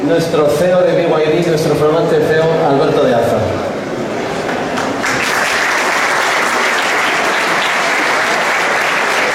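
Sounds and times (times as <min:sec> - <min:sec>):
speech: 0:00.1 - 0:03.7
audience applause: 0:04.4 - 0:09.3.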